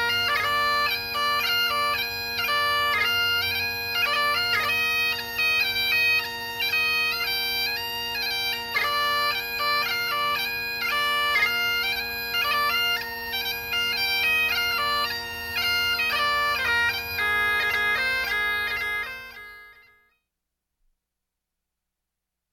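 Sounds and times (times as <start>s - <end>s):
bagpipe playing a Scottish melody: 0.0s - 20.1s.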